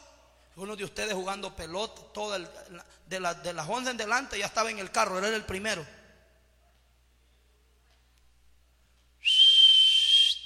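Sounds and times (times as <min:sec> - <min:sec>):
speech: 0:00.6 - 0:06.0
whistle blowing: 0:09.2 - 0:10.4.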